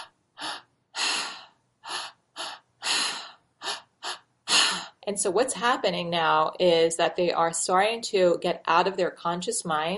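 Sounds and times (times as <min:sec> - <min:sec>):
active three-part breathing through the mouth: 0:00.0 - 0:05.0
speech: 0:05.1 - 0:09.9.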